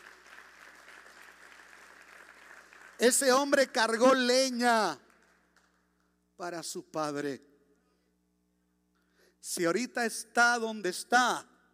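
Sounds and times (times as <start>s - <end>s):
audience applause: 0.0s - 3.4s
speech: 3.0s - 5.0s, 6.4s - 7.5s, 9.4s - 11.5s.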